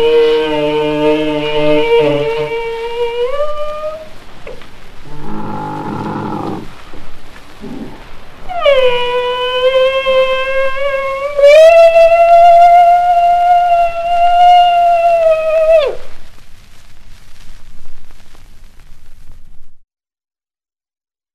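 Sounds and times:
Bactrian camel moaning call: 0.0s - 6.8s, 7.6s - 16.1s.

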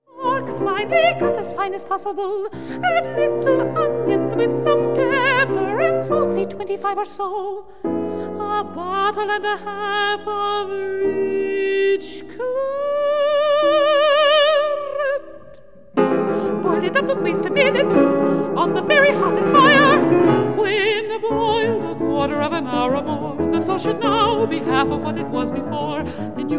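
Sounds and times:
soprano singing a song cycle with piano: 0.0s - 26.5s.

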